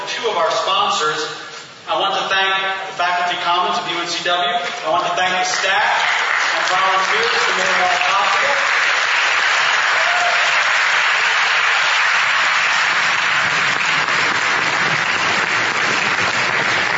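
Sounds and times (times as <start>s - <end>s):
speech: 0.2s - 8.7s
audience applause: 5.5s - 16.9s.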